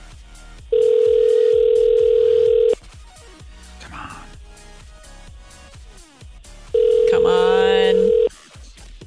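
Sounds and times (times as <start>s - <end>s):
outgoing phone call ringing: 0.7s - 2.8s, 6.8s - 8.3s.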